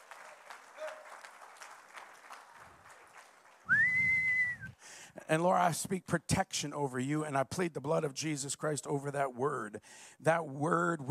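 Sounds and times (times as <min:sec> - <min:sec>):
audience hand clapping: 0:00.0 - 0:04.6
crowd noise: 0:00.0 - 0:04.7
loud sustained whistle sliding upward: 0:03.7 - 0:04.7
speech: 0:05.2 - 0:11.0.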